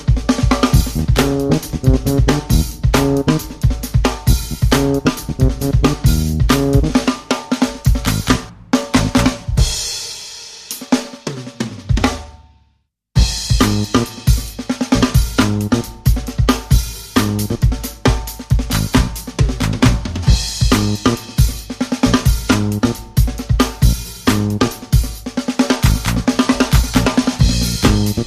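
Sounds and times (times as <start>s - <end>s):
soul bass: 0.0s - 7.1s, 7.9s - 9.9s, 13.2s - 16.3s, 17.0s - 17.8s, 18.5s - 25.1s, 25.8s - 28.2s
soul drums: 0.0s - 28.2s.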